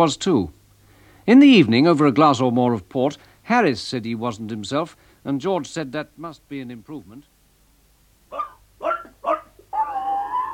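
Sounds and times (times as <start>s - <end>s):
speech: 0.0s - 0.6s, 1.3s - 7.3s
dog yipping: 8.3s - 10.5s.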